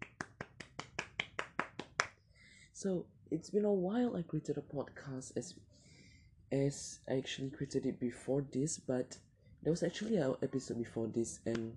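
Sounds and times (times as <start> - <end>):
single person clapping hands: 0.0 - 2.2
speech: 2.8 - 5.8, 6.5 - 11.7.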